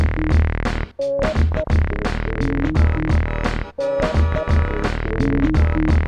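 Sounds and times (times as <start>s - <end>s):
86 BPM hip hop beat: 0.1s - 6.0s.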